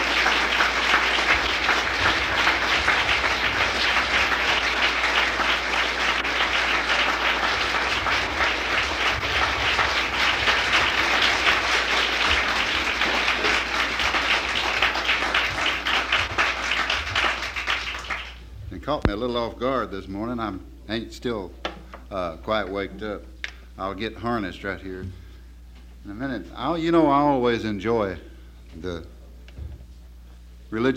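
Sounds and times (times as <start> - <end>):
festival audience applause: 0.0 - 18.5
speech: 19.2 - 25.2, 26.0 - 29.2, 30.7 - 30.9.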